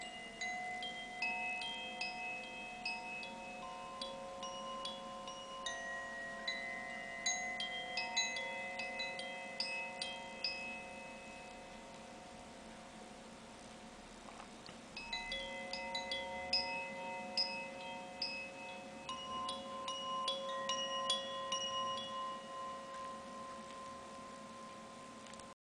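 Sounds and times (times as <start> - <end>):
singing bowls: 0.0 - 13.4, 15.0 - 25.6
chimes: 0.0 - 25.6.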